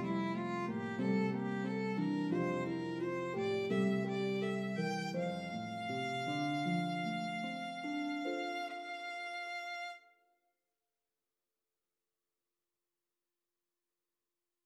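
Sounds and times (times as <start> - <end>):
harp melody: 0.0 - 10.0
violin: 0.0 - 10.1.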